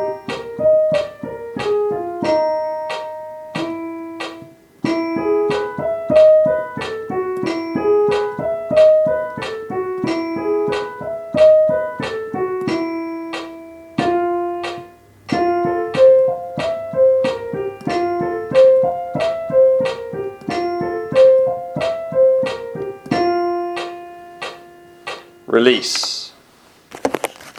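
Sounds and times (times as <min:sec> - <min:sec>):
soprano tenor piece: 0:00.0 - 0:25.5.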